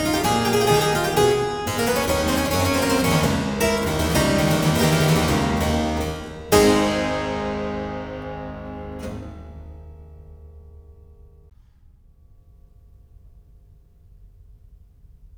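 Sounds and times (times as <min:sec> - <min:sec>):
prelude and fugue on keyboard: 0:00.0 - 0:11.3.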